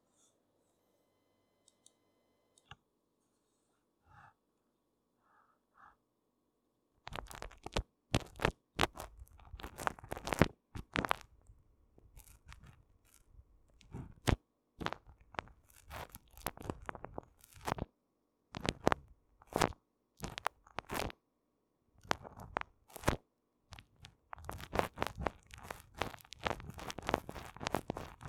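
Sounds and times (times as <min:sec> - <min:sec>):
cream massage ASMR sounds: 0:07.1 - 0:17.9, 0:18.6 - 0:21.2, 0:22.0 - 0:28.2.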